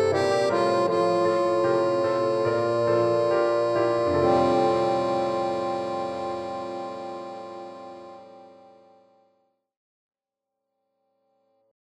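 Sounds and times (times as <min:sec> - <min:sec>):
bassoon: 0:00.0 - 0:09.1.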